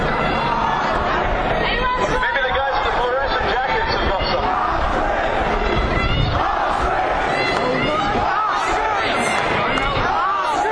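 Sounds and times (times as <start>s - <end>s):
crowd shouting on Threadneedle Street: 0.0s - 10.7s.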